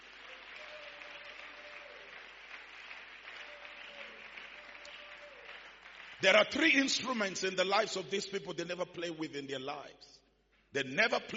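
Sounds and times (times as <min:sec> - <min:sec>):
audience clapping: 0:00.0 - 0:07.8
speech: 0:06.2 - 0:11.3.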